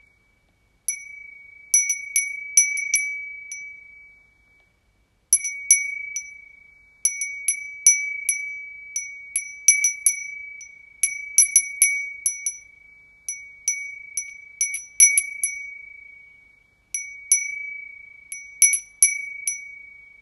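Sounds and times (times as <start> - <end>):
wind chime: 0.9 - 4.3, 5.3 - 15.9, 16.9 - 20.1.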